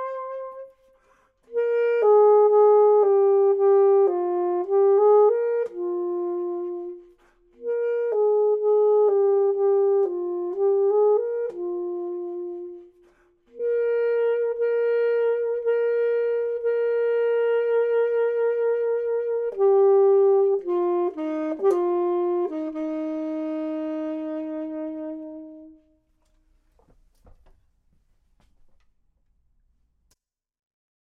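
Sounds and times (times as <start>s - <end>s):
clarinet: 0.0s - 26.4s
saxophone: 0.0s - 26.9s.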